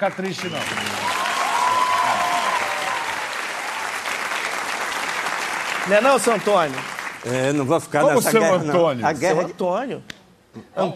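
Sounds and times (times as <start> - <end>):
speech: 0.0 - 1.1, 5.8 - 10.9
audience applause: 0.0 - 7.6.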